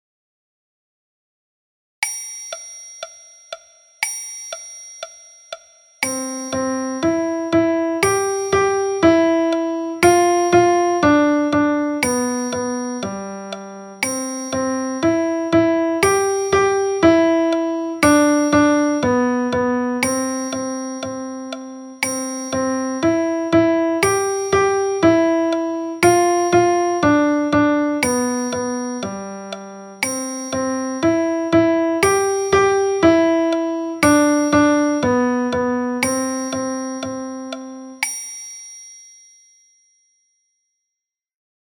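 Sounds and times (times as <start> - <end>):
piano music: 6.1 - 38.0.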